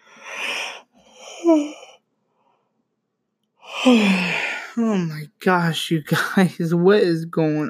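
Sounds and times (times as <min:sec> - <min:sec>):
person yawning: 0:00.2 - 0:02.0, 0:03.6 - 0:04.8
speech: 0:01.5 - 0:01.8, 0:03.8 - 0:07.6.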